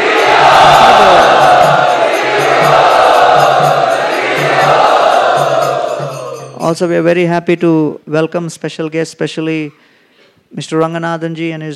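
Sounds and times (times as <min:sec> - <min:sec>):
large crowd chanting loudly in unison at an evening celebration: 0:00.0 - 0:06.5
speech: 0:06.7 - 0:09.9, 0:10.5 - 0:11.7.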